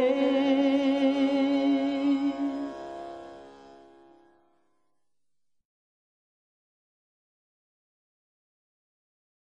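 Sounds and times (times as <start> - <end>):
devotional chant: 0.0 - 2.9.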